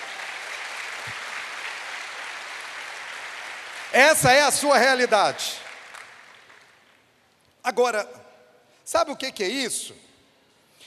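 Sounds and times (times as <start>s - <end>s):
audience applause: 0.0s - 6.8s
speech: 4.0s - 5.6s, 7.6s - 8.2s, 8.9s - 10.1s.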